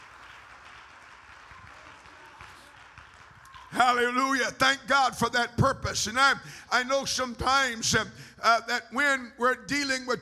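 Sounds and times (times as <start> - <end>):
audience clapping: 0.0 - 4.2
speech: 3.7 - 10.2.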